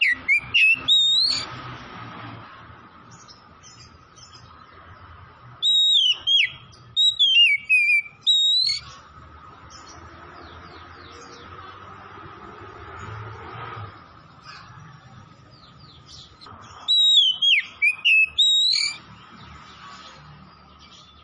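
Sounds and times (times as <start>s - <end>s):
Oriental magpie-robin whistled song: 0.0s - 1.5s, 5.6s - 9.0s, 15.6s - 19.1s.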